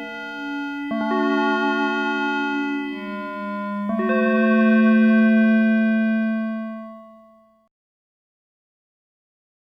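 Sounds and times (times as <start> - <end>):
Pierce scale examples: 0.0 - 7.6.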